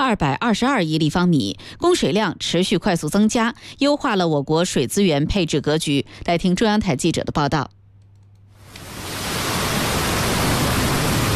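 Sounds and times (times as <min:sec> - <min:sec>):
speech: 0:00.1 - 0:07.8
flowing river water: 0:08.7 - 0:11.3.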